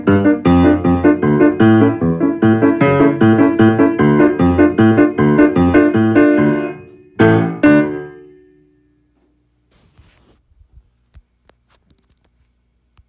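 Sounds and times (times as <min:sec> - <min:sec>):
fandango piano accompaniment at 152 bpm: 0:00.0 - 0:09.2.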